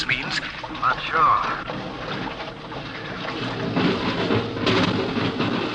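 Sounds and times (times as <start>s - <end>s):
water being pumped out of airlock: 0.0s - 5.6s
speech: 0.8s - 1.7s.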